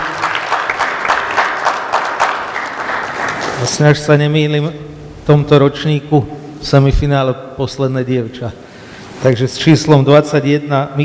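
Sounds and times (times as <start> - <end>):
audience applause: 0.0 - 3.8
speech: 3.7 - 11.0.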